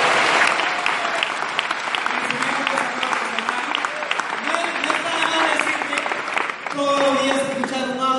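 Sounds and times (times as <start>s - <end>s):
cheering voices: 0.0s - 6.4s
crowd clapping: 0.0s - 8.0s.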